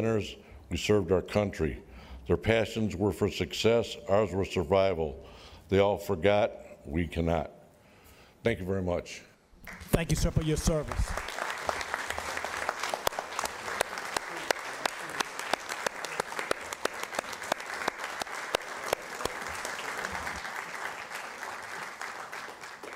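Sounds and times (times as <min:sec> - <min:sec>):
speech: 0:00.0 - 0:07.6, 0:08.4 - 0:11.3
audience applause: 0:09.6 - 0:22.9.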